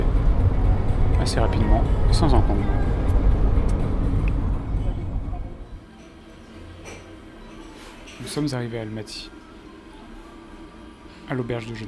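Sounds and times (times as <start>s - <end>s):
bus engine rumble inside a moving bus travelling to Almaty: 0.0s - 5.8s
road noise inside a moving bus: 0.0s - 5.8s
speech: 1.3s - 3.0s, 8.3s - 9.4s, 11.3s - 11.8s.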